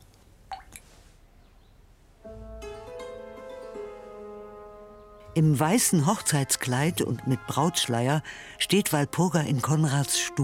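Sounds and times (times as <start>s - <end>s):
liquid dripping into a wine glass: 0.5s - 0.8s
speech: 5.4s - 10.4s.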